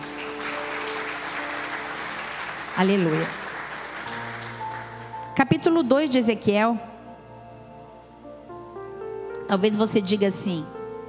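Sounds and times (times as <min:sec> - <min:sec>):
audience applauding: 0:00.0 - 0:05.4
speech: 0:02.8 - 0:03.4, 0:05.4 - 0:06.9, 0:09.5 - 0:10.8.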